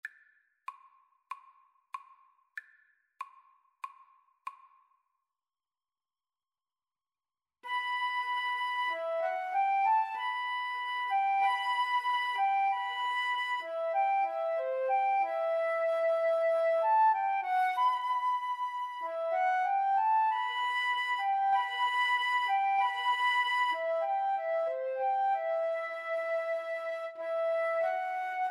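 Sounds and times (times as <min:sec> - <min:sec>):
flute duet: 0:07.6 - 0:28.4.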